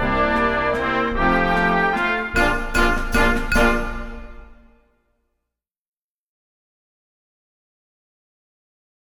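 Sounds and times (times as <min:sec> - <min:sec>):
band playing a waltz: 0:00.0 - 0:04.6
water glasses ringing: 0:02.4 - 0:04.6.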